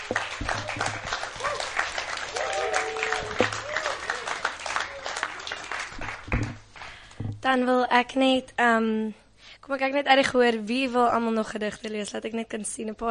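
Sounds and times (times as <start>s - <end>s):
audience applause: 0.0s - 7.1s
speech: 7.5s - 13.1s.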